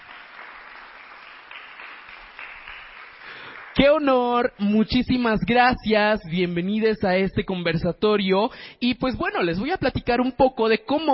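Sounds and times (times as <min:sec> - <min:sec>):
crowd applause: 0:00.0 - 0:03.8
speech: 0:03.8 - 0:11.1.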